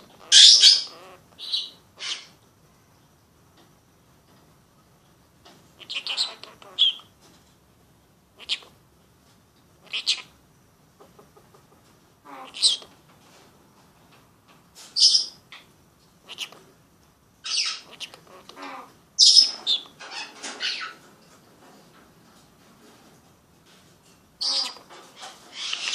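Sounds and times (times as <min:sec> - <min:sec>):
Senegal parrot squawking: 0:00.0 - 0:02.4, 0:05.8 - 0:07.1, 0:08.4 - 0:08.7, 0:09.8 - 0:10.4, 0:12.2 - 0:12.9, 0:15.0 - 0:16.6, 0:17.4 - 0:21.0, 0:24.4 - 0:25.9.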